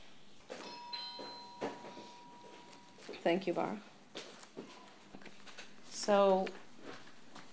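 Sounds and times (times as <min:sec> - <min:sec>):
doorbell chiming: 0:00.5 - 0:03.2
speech: 0:03.2 - 0:03.9, 0:06.1 - 0:06.6.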